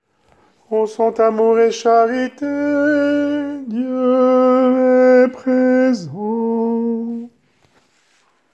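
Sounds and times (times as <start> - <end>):
tenor singing: 0.6 - 7.4.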